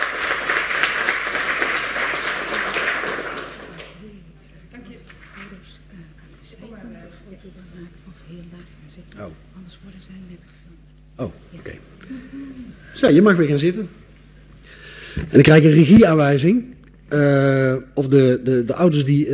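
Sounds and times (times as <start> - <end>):
audience applause: 0.0 - 4.0
speech: 9.9 - 11.7, 13.0 - 14.0, 15.2 - 19.3.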